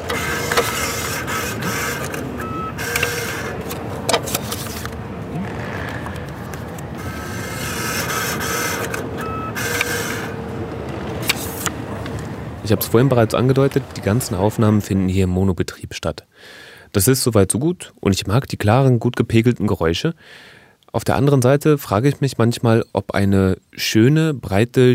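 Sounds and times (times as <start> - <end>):
ticket vending machine issuing a ticket: 0.0 - 14.8
speech: 12.7 - 24.9.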